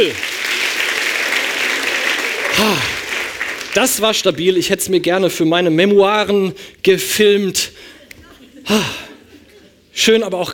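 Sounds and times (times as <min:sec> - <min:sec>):
speech: 0:00.0 - 0:00.3, 0:02.6 - 0:02.9, 0:03.7 - 0:07.9, 0:08.6 - 0:09.0, 0:10.0 - 0:10.5
audience applause: 0:00.0 - 0:04.4
laughter: 0:01.8 - 0:03.2, 0:07.8 - 0:09.9
person shouting or cheering: 0:02.5 - 0:03.0.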